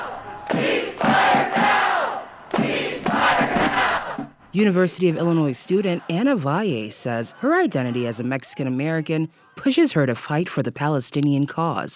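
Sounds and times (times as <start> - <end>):
protesters chanting in the street: 0.0 - 8.6
crowd roar: 0.0 - 9.8
speech: 4.6 - 11.9.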